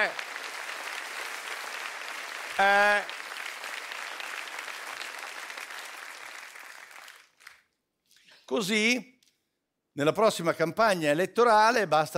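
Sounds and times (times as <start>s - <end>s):
audience applause: 0.0s - 7.6s
speech: 2.6s - 3.2s, 8.5s - 9.1s, 10.0s - 12.1s.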